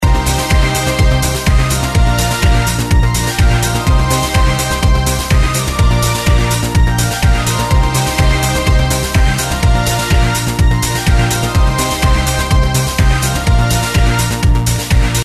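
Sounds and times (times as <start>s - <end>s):
background music: 0.0s - 15.2s.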